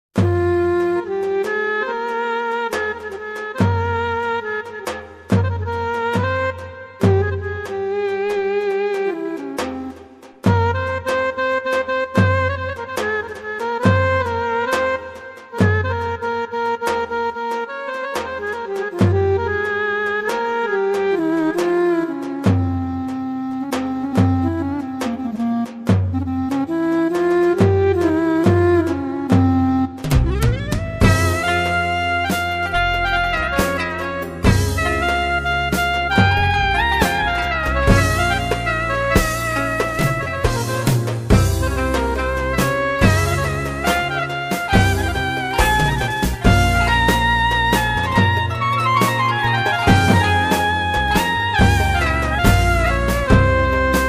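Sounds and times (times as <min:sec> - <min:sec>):
folk music on Korg PA55 keyboard: 0:00.2 - 0:54.0.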